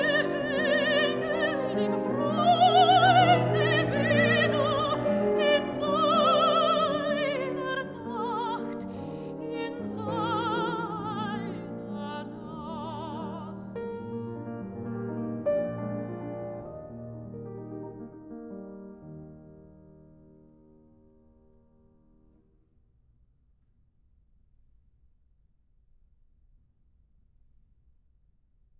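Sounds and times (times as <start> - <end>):
person singing: 0.0 - 13.7
piano: 0.0 - 22.6.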